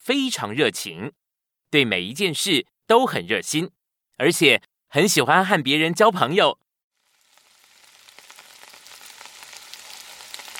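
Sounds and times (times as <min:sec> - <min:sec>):
speech: 0:00.0 - 0:06.6
steady rain pattering: 0:07.0 - 0:10.5.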